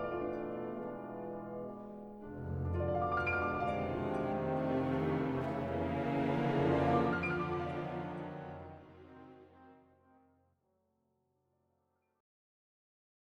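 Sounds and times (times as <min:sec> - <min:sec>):
piano concerto: 0:00.0 - 0:09.8.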